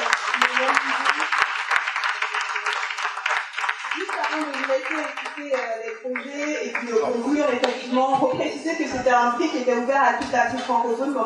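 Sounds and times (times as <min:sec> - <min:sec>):
audience applause: 0:00.0 - 0:05.8
speech: 0:06.9 - 0:11.2.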